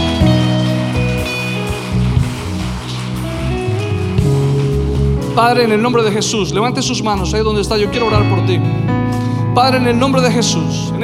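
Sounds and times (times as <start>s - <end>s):
audience applauding: 0.0s - 6.6s
sustained keyboard chords: 0.0s - 11.0s
speech: 5.4s - 8.9s, 9.6s - 11.0s.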